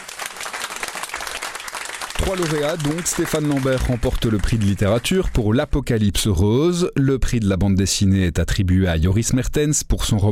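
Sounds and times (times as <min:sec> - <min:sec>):
audience applause: 0:00.0 - 0:05.7
speech: 0:02.3 - 0:10.2.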